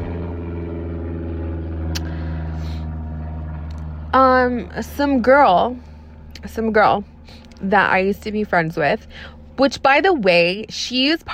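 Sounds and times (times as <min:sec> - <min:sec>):
airplane flying overhead: 0:00.0 - 0:11.3
speech: 0:04.1 - 0:11.3.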